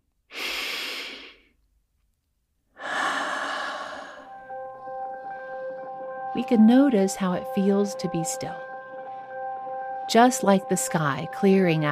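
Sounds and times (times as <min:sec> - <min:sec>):
long slow breath in and out: 0:00.3 - 0:01.5, 0:02.8 - 0:04.5
speech: 0:06.4 - 0:08.7, 0:10.1 - 0:11.9.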